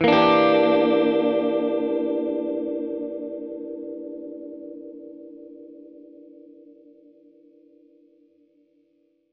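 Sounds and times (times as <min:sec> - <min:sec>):
Gretsch guitar E7b5 chord: 0:00.0 - 0:06.7.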